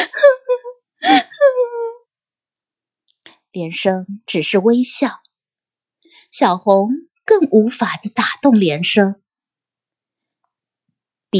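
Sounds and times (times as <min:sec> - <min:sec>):
woman sobbing: 0:00.0 - 0:02.0
speech: 0:03.6 - 0:05.2, 0:06.3 - 0:09.2.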